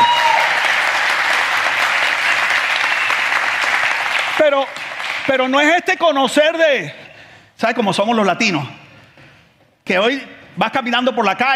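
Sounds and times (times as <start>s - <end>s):
audience applause: 0.0s - 5.4s
speech: 4.5s - 7.0s, 7.6s - 8.8s, 9.9s - 11.5s.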